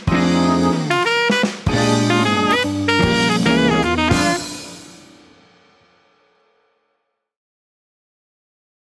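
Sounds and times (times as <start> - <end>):
alto singing a work song: 0.1 - 5.3.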